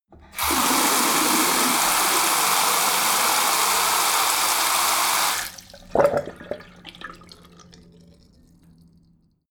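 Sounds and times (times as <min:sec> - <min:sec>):
bathroom tap water flowing very hard: 0:00.2 - 0:07.6.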